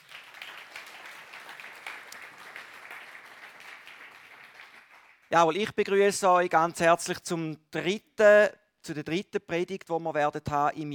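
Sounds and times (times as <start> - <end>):
audience applauding: 0.0 - 5.3
speech: 5.3 - 10.9.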